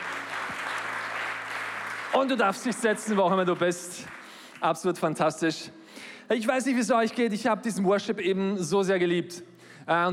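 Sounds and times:
audience applause: 0.0 - 4.6
speech: 2.1 - 10.1.

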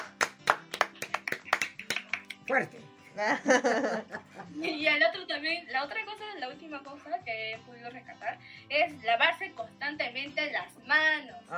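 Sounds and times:
audience clapping: 0.0 - 2.8
speech: 2.5 - 11.5
laughter: 3.1 - 4.8.

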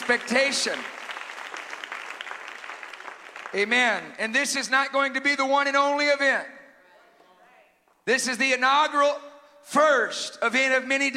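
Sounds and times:
audience clapping: 0.0 - 4.2
speech: 0.1 - 1.0, 3.5 - 6.6, 8.0 - 11.1.

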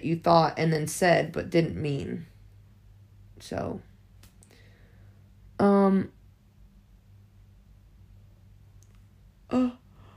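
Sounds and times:
speech: 0.0 - 2.3, 3.4 - 3.9, 5.6 - 6.2, 9.5 - 9.8
person yawning aloud: 9.5 - 9.9.

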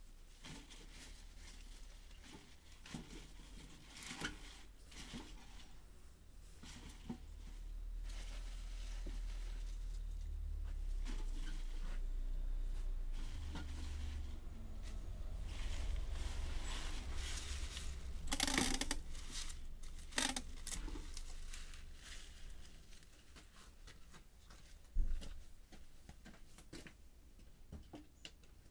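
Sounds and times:
mizukake-na greens rustling while weighed and bundled: 0.8 - 23.8
low steady hum: 9.3 - 22.7
tape crackling: 13.1 - 23.4.

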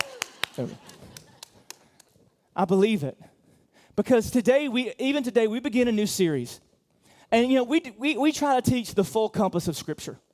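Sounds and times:
hand clapping: 0.0 - 2.3
speech: 0.6 - 1.0, 2.6 - 3.3, 4.0 - 6.6, 7.3 - 10.2.

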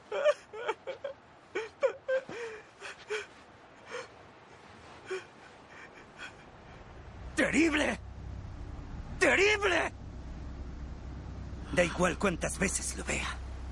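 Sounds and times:
man held by guards weeping inconsolably: 0.0 - 7.0
speech: 7.5 - 8.0, 9.3 - 10.0, 11.8 - 13.4.

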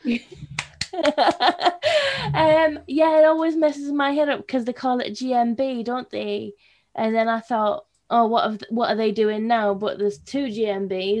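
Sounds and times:
speech: 0.0 - 0.4, 2.8 - 11.1
hand clapping: 0.4 - 1.5.

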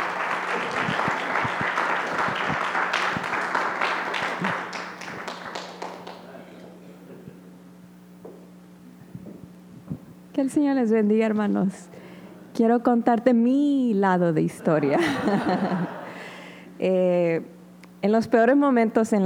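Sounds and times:
laughter: 0.0 - 5.4, 14.4 - 16.3
applause: 0.0 - 6.4
speech: 10.4 - 11.9, 12.6 - 16.0, 16.8 - 19.2.

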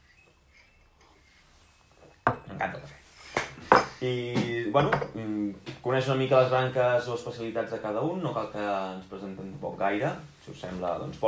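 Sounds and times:
coffee cups clinking in a toast: 0.0 - 5.4
speech: 4.0 - 11.2.

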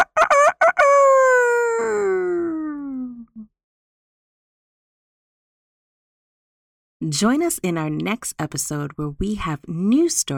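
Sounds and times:
rooster crowing in the morning: 0.0 - 2.4
speech: 7.0 - 10.3.

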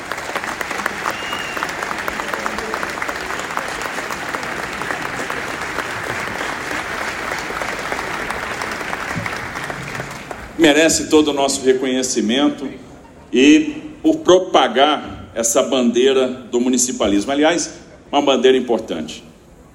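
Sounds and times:
audience applause: 0.0 - 10.6
speech: 10.6 - 19.3.

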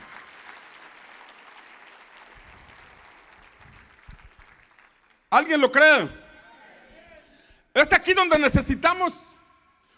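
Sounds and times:
audience applauding: 0.0 - 5.3
speech: 5.3 - 6.2, 7.8 - 9.3.

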